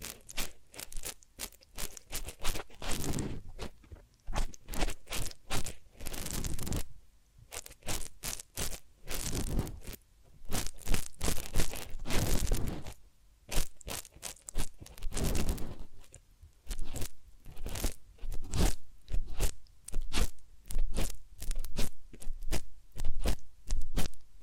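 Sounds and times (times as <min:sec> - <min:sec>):
ear cleaning and massage crunching and scraping: 0:00.0 - 0:06.9, 0:07.5 - 0:24.2.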